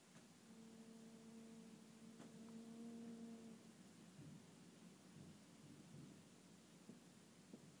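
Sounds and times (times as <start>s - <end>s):
whining window: 0.2s - 7.6s.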